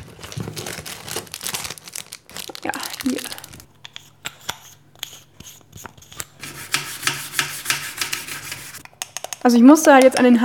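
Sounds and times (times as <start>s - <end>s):
old toothbrush scrubbing a stovetop: 3.3s - 9.4s
speech: 9.4s - 10.4s.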